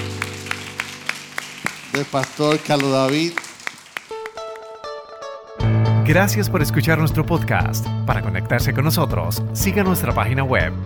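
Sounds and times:
audience clapping in rhythm: 0.0s - 5.0s
speech: 2.0s - 3.4s, 6.1s - 10.8s.

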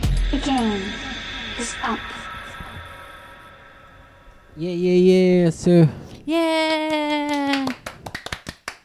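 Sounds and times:
sustained tonal note: 0.1s - 4.8s
speech: 0.5s - 1.0s, 1.6s - 2.2s, 4.6s - 7.7s
sparse audience hand claps: 6.9s - 8.8s.

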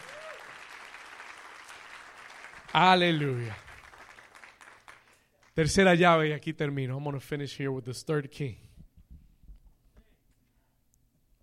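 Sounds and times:
audience applauding: 0.0s - 5.6s
speech: 2.8s - 3.6s, 5.6s - 8.6s.

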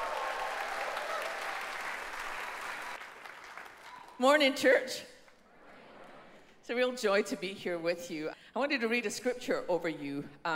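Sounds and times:
audience applause: 0.0s - 4.2s
speech: 4.2s - 5.1s, 6.7s - 10.5s.

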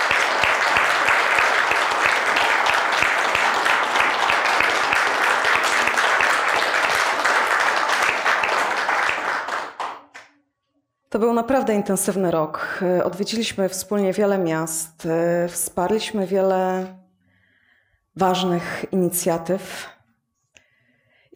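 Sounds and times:
audience applause: 0.0s - 10.3s
speech: 11.2s - 17.0s, 18.2s - 19.9s.

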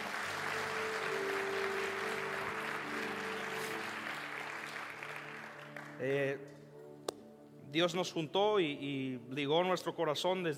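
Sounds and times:
crowd applauding: 0.0s - 6.2s
speech: 6.0s - 6.6s, 7.7s - 10.5s.

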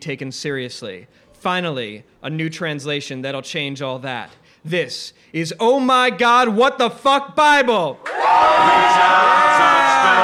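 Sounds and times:
speech: 0.0s - 10.2s
live audience crowd cheering: 8.0s - 10.2s.

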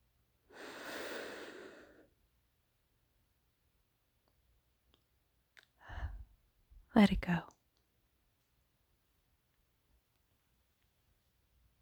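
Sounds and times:
deep inhale during a guided breathing exercise: 0.5s - 2.1s, 5.8s - 6.2s
speech: 7.0s - 7.6s.

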